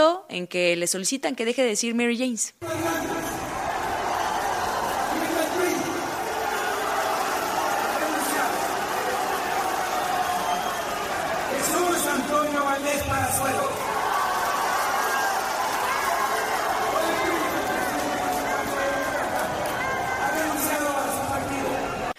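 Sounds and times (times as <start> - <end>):
speech: 0.3 - 3.3
crowd booing at political rally: 2.6 - 22.1.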